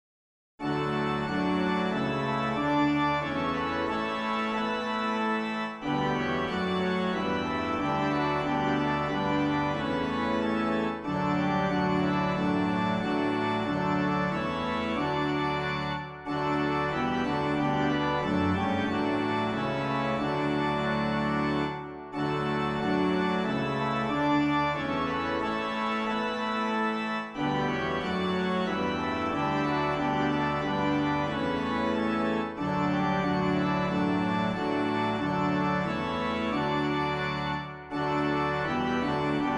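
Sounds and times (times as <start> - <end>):
organ: 0.6 - 39.5.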